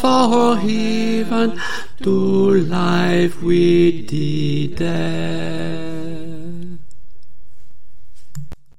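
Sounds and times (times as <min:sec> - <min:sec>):
soprano singing a carol: 0:00.0 - 0:06.8.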